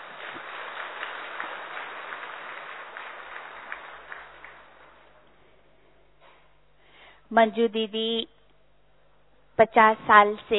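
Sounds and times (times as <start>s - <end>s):
audience clapping in welcome: 0.0s - 5.6s
speech: 7.3s - 8.4s, 9.6s - 10.5s.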